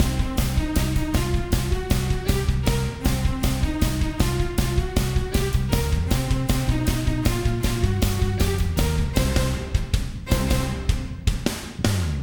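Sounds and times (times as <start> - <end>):
city platformer game music: 0.0 - 11.4.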